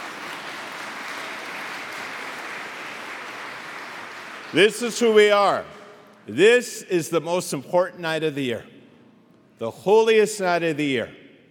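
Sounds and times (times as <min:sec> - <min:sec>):
audience applauding: 0:00.0 - 0:04.8
speech: 0:04.5 - 0:08.7, 0:09.6 - 0:11.2.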